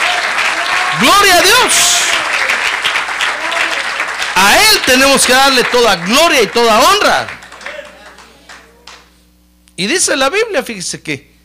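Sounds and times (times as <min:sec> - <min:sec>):
audience applause: 0:00.0 - 0:09.1
speech: 0:01.0 - 0:02.6, 0:04.4 - 0:07.4, 0:09.8 - 0:11.3.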